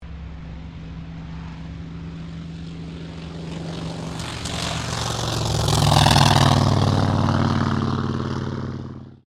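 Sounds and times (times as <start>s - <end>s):
T-28D Trojan aircraft takeoff: 0.0s - 9.2s.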